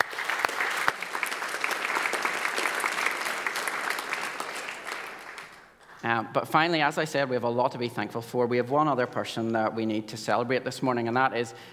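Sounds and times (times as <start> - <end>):
audience applause: 0.0 - 6.0
speech: 6.0 - 11.7.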